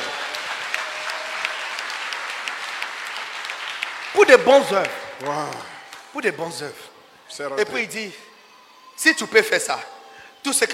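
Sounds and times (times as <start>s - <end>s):
audience applauding: 0.0s - 6.3s
speech: 4.1s - 8.3s, 9.0s - 10.7s.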